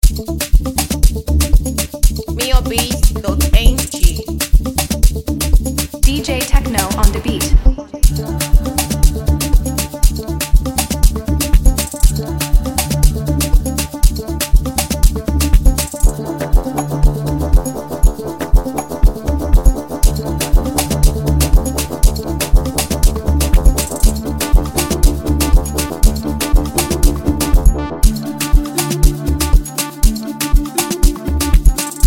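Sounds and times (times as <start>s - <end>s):
music beat: 0.0s - 32.0s.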